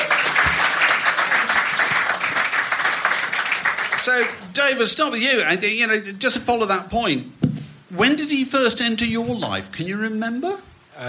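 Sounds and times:
audience applause welcoming two guests onto the stage: 0:00.0 - 0:04.5
speech: 0:04.0 - 0:11.0.

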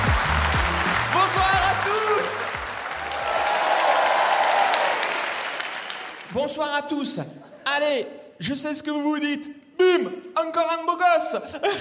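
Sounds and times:
audience applause: 0:00.0 - 0:06.3
people cheering: 0:00.0 - 0:06.3
speech: 0:06.5 - 0:11.7.

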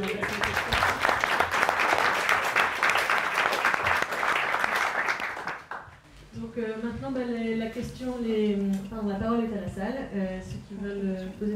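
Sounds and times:
audience applause: 0:00.0 - 0:05.9
speech: 0:07.1 - 0:11.5.

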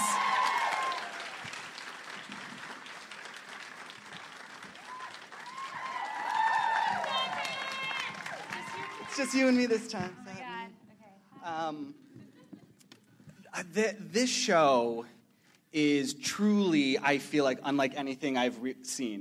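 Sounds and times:
audience applause: 0:00.0 - 0:10.0
speech: 0:09.2 - 0:10.2, 0:11.7 - 0:12.0, 0:13.6 - 0:19.1.

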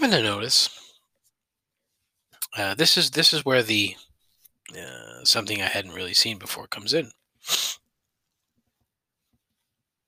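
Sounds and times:
speech: 0:00.1 - 0:00.8, 0:02.5 - 0:04.1, 0:04.7 - 0:07.8
sniffle: 0:07.4 - 0:07.8.

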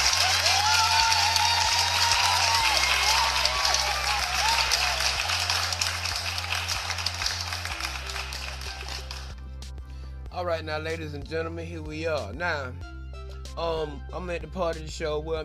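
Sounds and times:
round of applause: 0:00.0 - 0:09.3
speech: 0:10.4 - 0:12.9, 0:13.6 - 0:15.4.

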